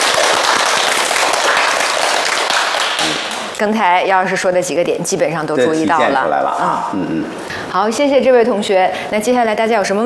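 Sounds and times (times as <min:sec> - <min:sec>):
classroom applause: 0:00.0 - 0:03.6
speech: 0:03.6 - 0:10.0.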